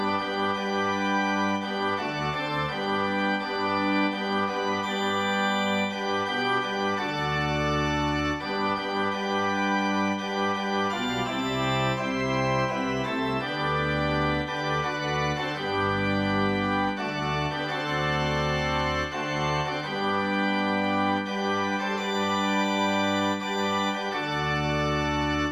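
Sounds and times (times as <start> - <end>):
organ music: 0.0 - 25.5.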